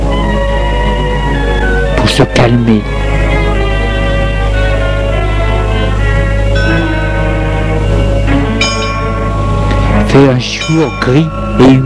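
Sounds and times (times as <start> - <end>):
steady low hum: 0.0 - 11.8
speech: 2.5 - 3.0, 10.2 - 11.8
church bells ringing: 6.4 - 11.8.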